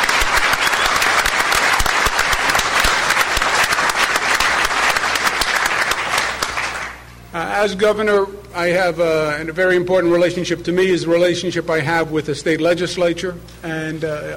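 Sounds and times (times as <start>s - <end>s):
audience applause: 0.0s - 7.0s
speech: 7.6s - 14.3s.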